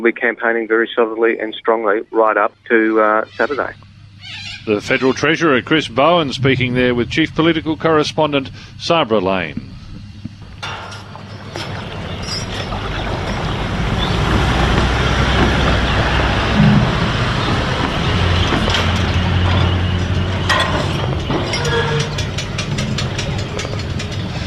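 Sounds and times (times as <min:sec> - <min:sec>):
speech: 0:00.0 - 0:09.7
early morning sounds on the Murray River at Manham: 0:01.8 - 0:24.4
punt crossing the Murray River at Manham: 0:10.5 - 0:24.4.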